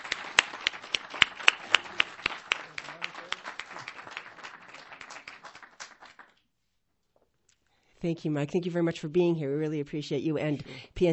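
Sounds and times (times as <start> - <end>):
audience applause: 0.0 - 6.3
speech: 8.0 - 11.1.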